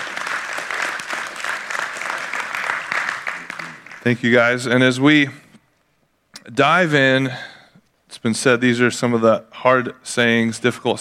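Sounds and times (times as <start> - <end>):
audience applause: 0.0 - 4.2
speech: 4.0 - 5.4, 6.5 - 7.5, 8.2 - 10.9.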